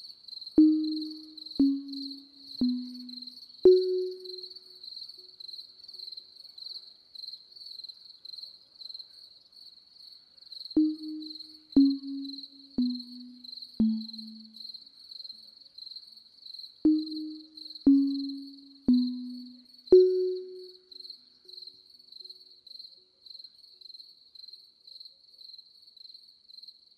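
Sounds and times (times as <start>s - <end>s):
sleep music: 0.6s - 4.8s, 10.8s - 14.8s, 16.9s - 21.0s.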